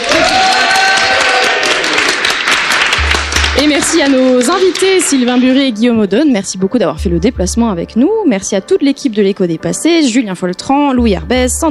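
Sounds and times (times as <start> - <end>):
audience applause: 0.0 - 5.2
speech: 3.8 - 11.6.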